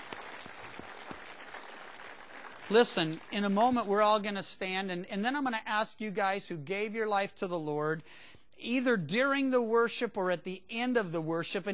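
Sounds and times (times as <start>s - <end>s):
church congregation applauding to welcome new believers: 0.0s - 4.0s
speech: 2.7s - 11.7s.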